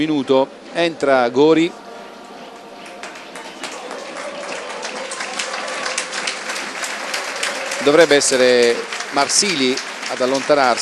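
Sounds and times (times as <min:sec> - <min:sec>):
speech: 0:00.0 - 0:01.8, 0:07.8 - 0:10.8
stadium crowd applauding: 0:02.5 - 0:10.8.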